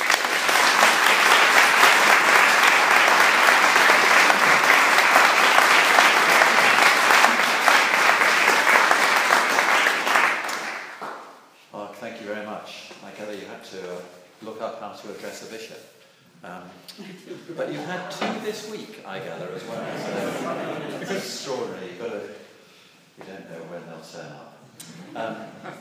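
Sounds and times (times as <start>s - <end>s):
audience applause welcoming the Bishop of Oxford at a Warfield evening talk: 0.0s - 11.2s
laughter: 1.1s - 7.7s, 19.4s - 21.4s, 24.7s - 25.7s.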